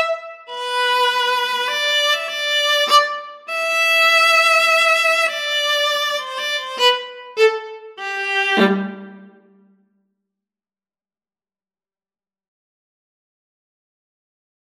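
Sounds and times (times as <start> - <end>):
viola and cello duet: 0.0 - 9.4.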